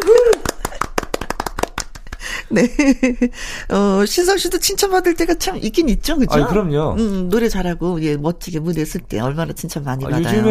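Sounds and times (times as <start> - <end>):
sharp crisp claps: 0.0 - 2.4
laughter: 2.2 - 3.4
speech: 2.5 - 10.4.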